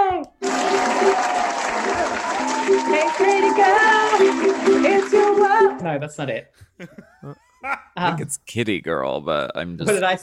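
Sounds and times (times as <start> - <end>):
people applauding for a birthday: 0.2 - 5.8
speech: 5.8 - 10.2
laughter: 6.8 - 8.2.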